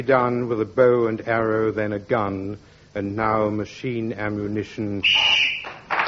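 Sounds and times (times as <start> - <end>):
speech: 0.0 - 5.6
whistle blown to end the round: 5.0 - 5.9.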